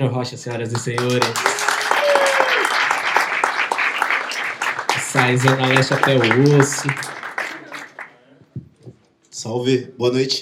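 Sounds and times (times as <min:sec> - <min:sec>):
speech: 0:00.0 - 0:01.7, 0:05.2 - 0:07.2, 0:09.4 - 0:10.3
audience applause: 0:00.6 - 0:08.2.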